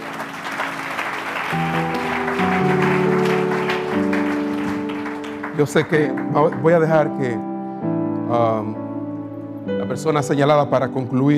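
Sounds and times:
audience applause: 0.0s - 6.9s
sustained instrumental chords: 0.0s - 11.3s
speech: 5.6s - 8.8s, 9.9s - 11.3s.

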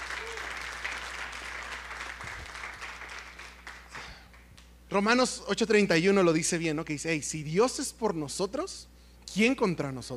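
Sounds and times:
audience applause: 0.0s - 4.2s
speech: 4.9s - 10.1s.

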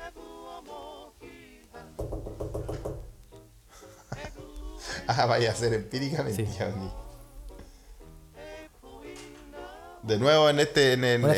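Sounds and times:
knocking on a wall: 2.0s - 3.3s
people laughing: 3.8s - 5.1s
speech: 5.1s - 7.0s, 10.1s - 11.3s.

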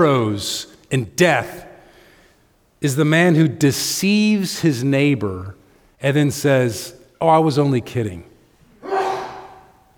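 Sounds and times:
speech: 0.0s - 1.7s, 2.8s - 8.3s
sneeze: 8.8s - 9.8s.

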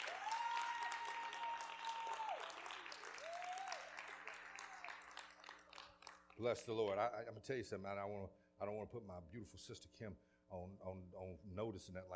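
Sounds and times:
audience applauding: 0.0s - 6.4s
speech: 6.4s - 12.1s.

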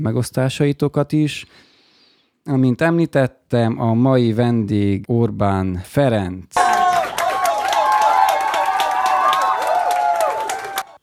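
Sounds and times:
speech: 0.0s - 1.7s, 2.4s - 6.7s
crowd clapping: 6.6s - 11.0s
scattered cheers and whoops: 6.6s - 11.0s.

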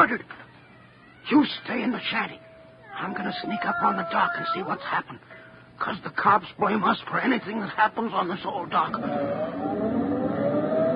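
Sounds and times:
speech: 0.1s - 0.4s, 1.3s - 10.1s
car driving away: 9.0s - 10.9s.

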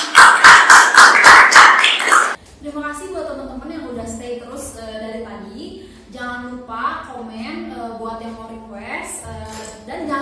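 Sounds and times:
people clapping: 0.0s - 2.4s.

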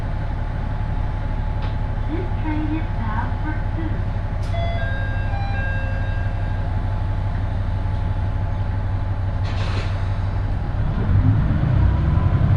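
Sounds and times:
one-car railbus engine drone on the Ise Railway: 0.0s - 12.5s
railbus rolling rumble: 0.0s - 12.5s
brief voices: 2.0s - 4.1s.

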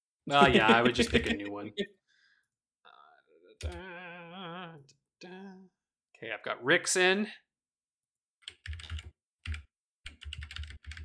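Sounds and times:
laughter: 0.3s - 1.9s
speech: 0.3s - 2.0s, 3.6s - 3.9s, 5.2s - 7.4s
typing on a computer keyboard during a game: 8.4s - 11.0s.

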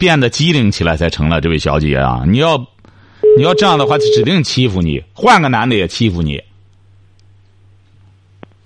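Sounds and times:
speech: 0.0s - 2.7s, 3.4s - 6.5s
phone ringback tones, call not answered: 3.2s - 4.3s.

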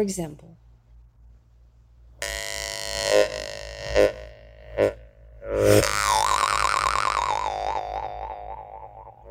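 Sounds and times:
Saka mouth harp homus twanging and droning: 2.2s - 9.3s.

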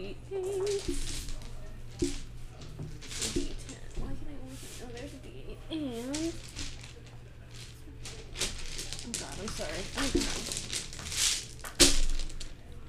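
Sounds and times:
lively overlapping talk: 0.0s - 10.7s
big handful of dice rolled during a tabletop roleplaying game: 0.6s - 2.3s, 2.9s - 4.0s, 6.1s - 12.7s.

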